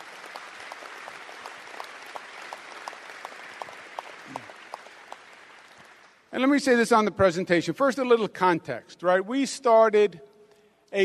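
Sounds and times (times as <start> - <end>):
audience applause: 0.0 - 6.3
speech: 6.4 - 10.3.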